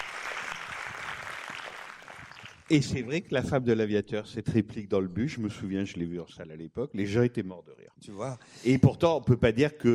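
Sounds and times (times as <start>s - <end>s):
crowd applause: 0.0s - 2.7s
speech: 2.7s - 9.9s.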